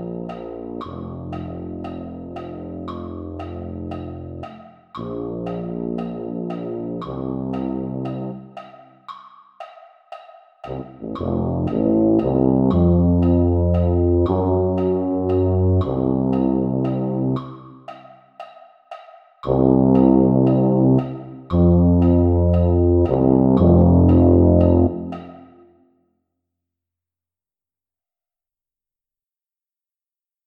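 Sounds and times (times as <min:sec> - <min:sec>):
tuba: 0:00.0 - 0:08.6, 0:10.7 - 0:17.8, 0:19.4 - 0:25.6.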